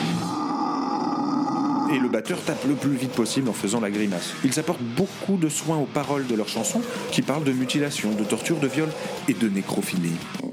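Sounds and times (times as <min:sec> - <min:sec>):
pig-like death metal growl: 0:00.2 - 0:03.4, 0:06.6 - 0:09.3
speech: 0:01.9 - 0:10.4.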